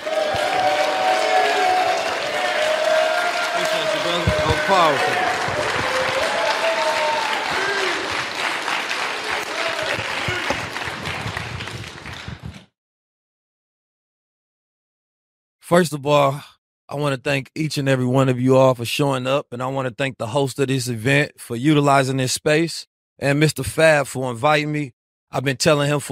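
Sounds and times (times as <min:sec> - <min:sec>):
cheers and whoops: 0:00.0 - 0:11.0
audience applause welcoming a speaker: 0:00.0 - 0:12.7
speech: 0:04.8 - 0:05.2, 0:15.7 - 0:26.1.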